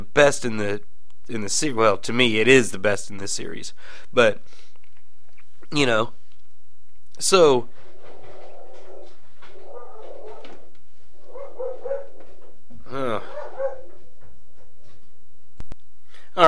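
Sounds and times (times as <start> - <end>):
speech: 0.2 - 4.6, 5.7 - 6.2, 7.2 - 7.8
dog growling: 8.0 - 14.1
female dog barking at something outside in the dark: 8.2 - 12.5, 13.2 - 14.1.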